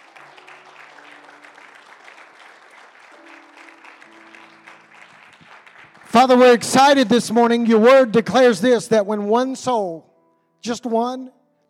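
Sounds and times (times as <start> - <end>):
congregation giving a hand clap of praise: 0.0 - 8.4
speech: 6.1 - 11.6.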